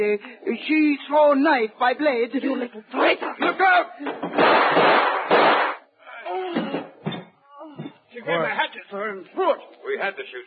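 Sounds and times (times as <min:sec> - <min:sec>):
speech: 0:00.0 - 0:05.2, 0:07.7 - 0:10.4
gunshots in a dramatized scene: 0:04.3 - 0:05.8.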